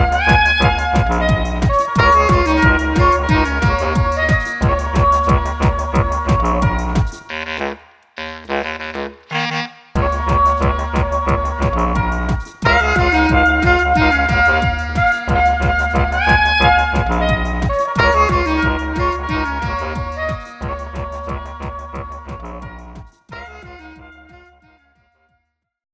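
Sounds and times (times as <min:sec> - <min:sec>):
drums: 0:00.0 - 0:07.7, 0:10.0 - 0:24.2.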